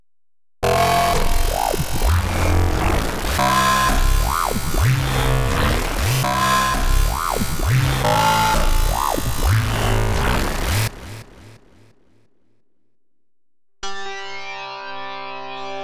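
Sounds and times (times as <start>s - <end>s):
Synclavier synthesizer sequence: 0.6s - 12.0s.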